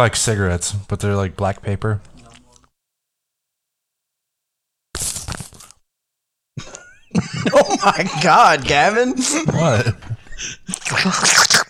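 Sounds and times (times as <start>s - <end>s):
speech: 0.0s - 2.1s, 6.6s - 11.6s
person spitting out chewing gum: 4.9s - 5.8s, 10.6s - 11.6s
laughter: 6.6s - 11.3s.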